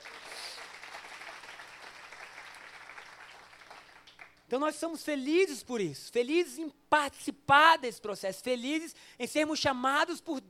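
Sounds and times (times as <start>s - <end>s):
audience applause: 0.0s - 4.4s
speech: 4.5s - 10.4s.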